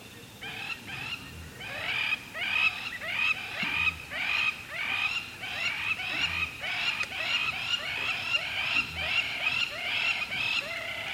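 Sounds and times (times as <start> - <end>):
background hiss: 0.0 - 11.1
lapwing calling: 0.4 - 11.1.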